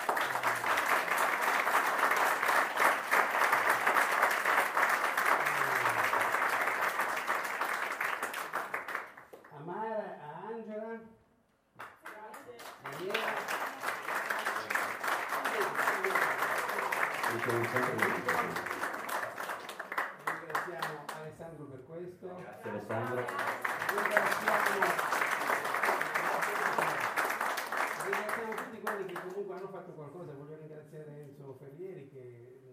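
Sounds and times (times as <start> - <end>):
audience applause: 0.0 - 9.4, 12.5 - 21.2, 22.7 - 29.4
speech: 17.5 - 18.4.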